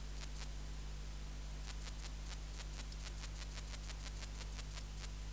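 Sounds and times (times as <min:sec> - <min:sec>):
Platycleis tessellata bush-cricket ticking song: 0:00.2 - 0:00.5, 0:01.6 - 0:05.1.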